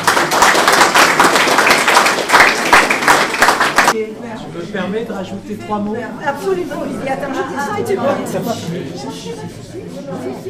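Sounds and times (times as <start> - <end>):
crowd applause: 0.0 - 4.0
speech: 4.0 - 10.4.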